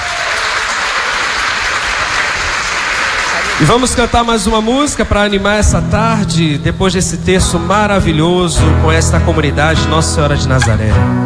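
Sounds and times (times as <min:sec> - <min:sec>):
round of applause: 0:00.0 - 0:04.3
speech: 0:03.6 - 0:11.2.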